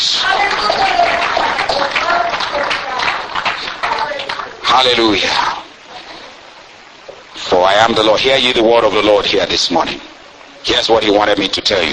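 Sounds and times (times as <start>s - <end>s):
audience hand clapping: 0.1s - 5.2s
speech: 4.8s - 5.5s, 7.8s - 11.9s.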